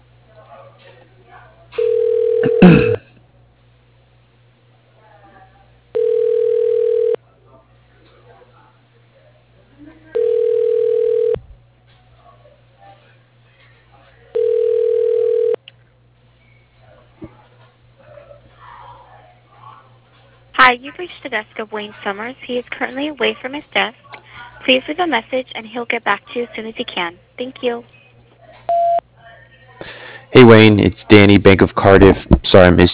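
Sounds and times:
telephone ringback tone while a call is being transferred: 1.8s - 2.7s, 6.0s - 7.2s, 10.2s - 11.4s, 14.4s - 15.6s, 28.7s - 29.0s
speech: 2.5s - 3.0s, 20.7s - 24.0s, 24.7s - 28.0s, 30.4s - 32.9s.

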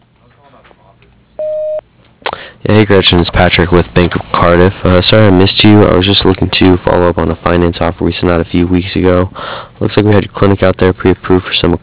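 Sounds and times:
voicemail tone electronic beep: 1.4s - 1.8s
speech: 2.7s - 11.8s.

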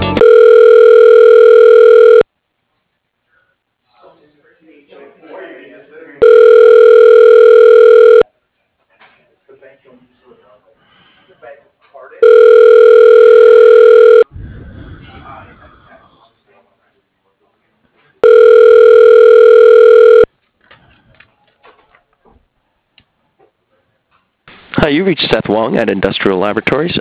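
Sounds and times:
phone ringback tone during call transfer: 0.2s - 2.3s, 6.2s - 8.3s, 12.2s - 14.3s, 18.2s - 20.3s
speech: 25.1s - 26.9s.

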